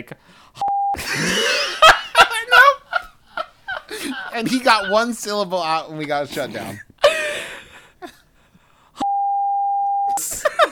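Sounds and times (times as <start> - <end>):
speech: 0.0 - 2.6, 4.0 - 6.9
censor bleep over a word: 0.6 - 1.0, 9.0 - 10.2
laughter: 1.0 - 5.4, 10.2 - 10.7.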